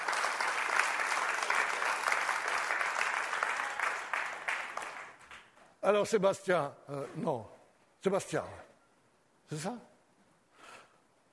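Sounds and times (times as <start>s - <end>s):
audience applause: 0.0s - 5.5s
speech: 5.8s - 8.7s, 9.5s - 9.9s.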